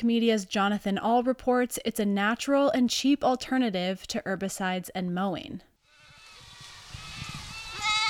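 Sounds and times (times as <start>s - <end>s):
speech: 0.0s - 5.7s
Spanish goats bleating while roaming a field: 5.9s - 8.0s.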